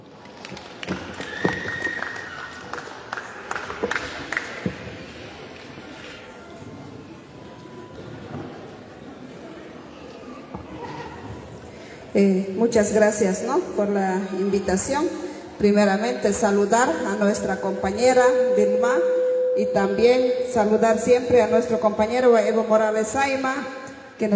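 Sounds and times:
audience applause: 0:00.0 - 0:05.8
speech: 0:12.2 - 0:24.3.

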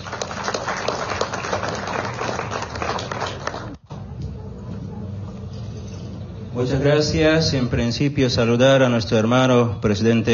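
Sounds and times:
crowd applauding: 0:00.0 - 0:03.8
speech: 0:06.6 - 0:10.3.

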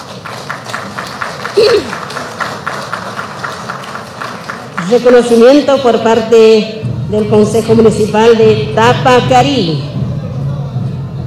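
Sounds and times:
applause: 0:00.0 - 0:05.7
speech: 0:01.6 - 0:02.0, 0:04.9 - 0:09.9.

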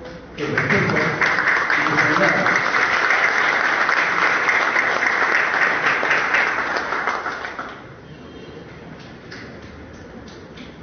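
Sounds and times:
speech: 0:00.4 - 0:01.3
audience applause: 0:00.4 - 0:08.0.

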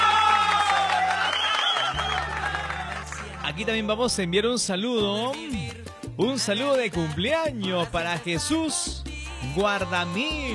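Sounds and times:
audience applause: 0:00.0 - 0:03.7
speech: 0:03.6 - 0:10.5.

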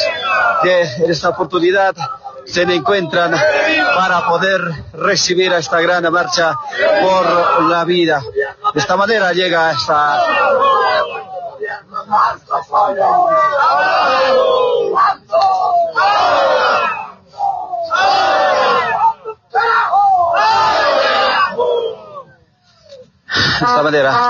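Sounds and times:
large crowd cheering and chanting welcoming a march: 0:00.0 - 0:00.8, 0:06.6 - 0:07.8, 0:09.9 - 0:22.2
speech: 0:00.6 - 0:10.6, 0:12.1 - 0:14.7, 0:23.6 - 0:24.2.

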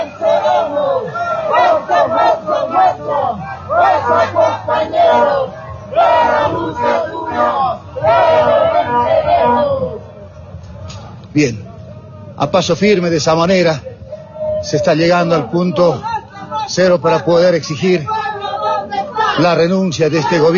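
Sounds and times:
marching crowd shouting a revolutionary chant: 0:00.0 - 0:10.0, 0:18.1 - 0:19.4
speech: 0:11.4 - 0:11.6, 0:12.4 - 0:13.9, 0:14.6 - 0:16.1, 0:16.7 - 0:18.2, 0:19.4 - 0:20.5.

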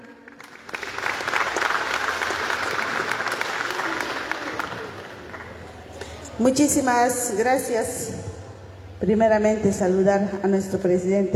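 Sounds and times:
loud applause from audience: 0:00.0 - 0:06.1
speech: 0:06.4 - 0:08.2, 0:09.0 - 0:11.3.

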